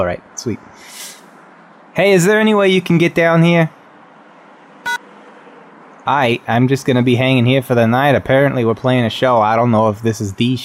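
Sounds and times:
speech: 0.0s - 1.1s, 2.0s - 3.8s, 6.1s - 10.6s
electronic beep: 4.8s - 5.0s.

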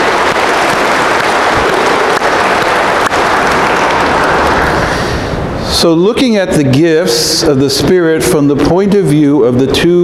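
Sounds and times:
audience applauding: 0.0s - 5.2s
speech: 5.8s - 10.0s.

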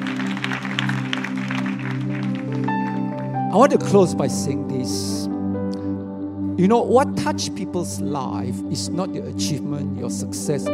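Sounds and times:
church audience clapping: 0.0s - 3.5s
speech: 3.6s - 5.2s, 6.6s - 10.7s.

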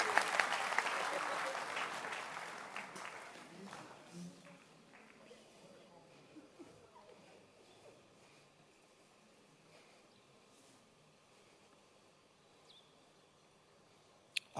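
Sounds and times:
audience applause: 0.0s - 5.6s.

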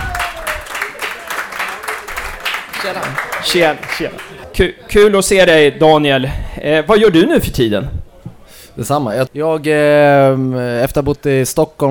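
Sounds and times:
audience applause: 0.0s - 4.5s
speech: 2.8s - 8.0s, 8.8s - 11.8s.

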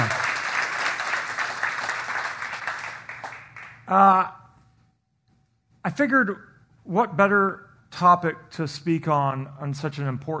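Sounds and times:
hand clapping: 0.0s - 3.9s
speech: 3.9s - 4.4s, 5.8s - 10.3s.

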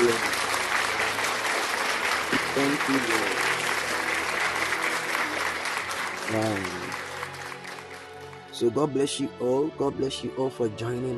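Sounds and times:
audience clapping hands: 0.0s - 8.8s
speech: 2.6s - 3.4s, 6.3s - 6.9s, 8.6s - 11.1s.

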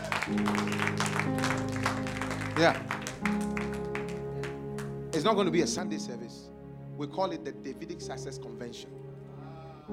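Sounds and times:
audience clapping: 0.0s - 5.6s
speech: 0.3s - 0.7s, 2.6s - 2.9s, 5.2s - 9.1s.

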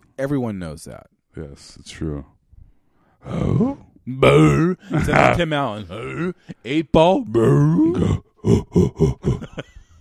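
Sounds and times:
speech: 0.2s - 2.4s, 3.2s - 9.7s
person imitating monkey grunts: 3.2s - 6.4s, 7.4s - 9.6s.

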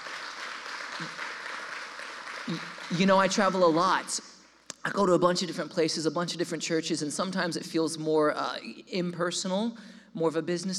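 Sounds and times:
church audience round of applause: 0.0s - 4.0s
speech: 1.0s - 1.2s, 2.5s - 10.7s.

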